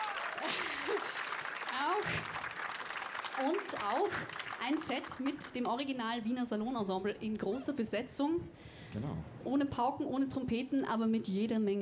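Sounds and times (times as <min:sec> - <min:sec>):
vocal whoops and cheers: 0:00.0 - 0:01.2
crowd applauding: 0:00.0 - 0:05.9
speech: 0:01.9 - 0:02.4, 0:03.4 - 0:11.8.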